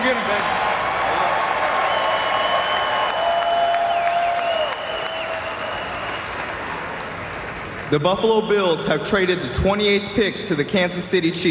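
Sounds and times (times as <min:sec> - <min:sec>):
crowd cheering and applauding: 0:00.0 - 0:08.4
speech: 0:00.1 - 0:00.7, 0:07.9 - 0:11.4.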